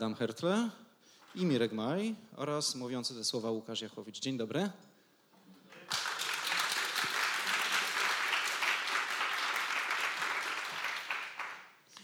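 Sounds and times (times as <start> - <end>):
speech: 0.0 - 4.9
audience applause: 5.7 - 11.8.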